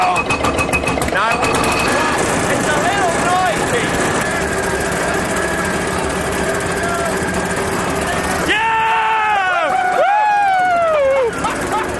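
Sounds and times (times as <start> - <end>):
claw machine firing a projectile: 0.6 - 8.5
loud crowd chatter: 1.2 - 10.1
laughter: 9.4 - 11.9.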